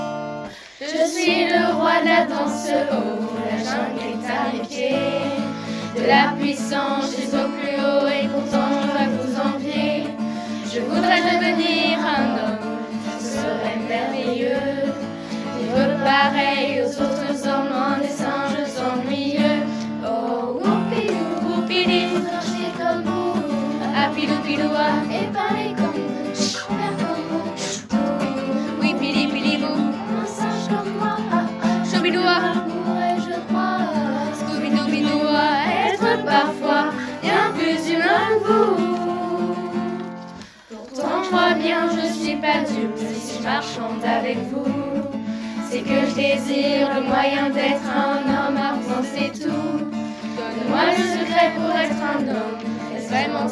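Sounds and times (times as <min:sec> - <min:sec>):
chorale: 0:00.2 - 0:53.4.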